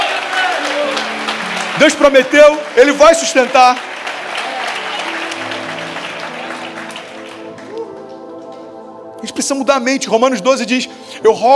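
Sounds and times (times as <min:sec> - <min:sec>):
audience applauding: 0:00.0 - 0:08.8
speech: 0:01.8 - 0:03.9, 0:09.2 - 0:11.5.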